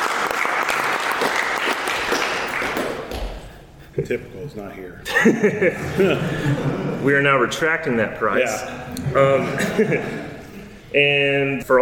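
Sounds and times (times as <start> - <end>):
audience applause: 0.0 - 3.4
speech: 4.0 - 10.2, 10.9 - 11.8
laughter: 5.0 - 10.8.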